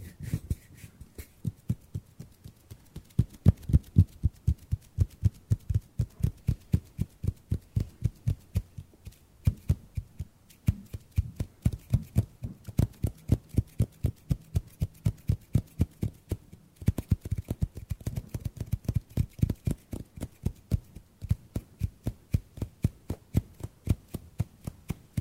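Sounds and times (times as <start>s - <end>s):
soft dull hand taps and pats: 0.2s - 25.1s.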